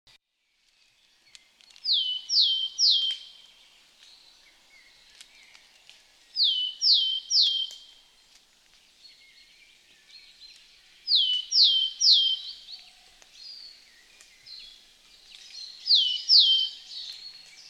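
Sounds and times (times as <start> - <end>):
willow tit sharp whistles falling in pitch: 1.8 - 3.4, 6.4 - 7.9, 11.1 - 12.8, 13.5 - 17.6.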